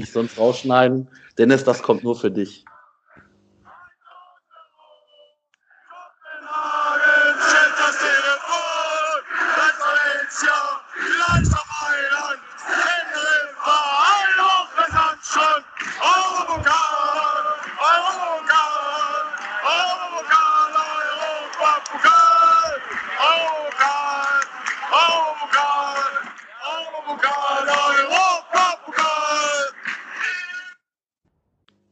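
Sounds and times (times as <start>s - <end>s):
speech: 0.0s - 2.7s
crowd singing and chanting in a jingle: 2.6s - 30.3s.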